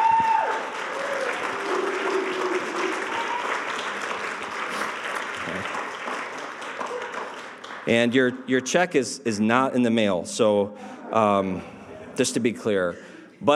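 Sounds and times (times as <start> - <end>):
applause: 0.0 - 8.3
speech: 7.9 - 13.5.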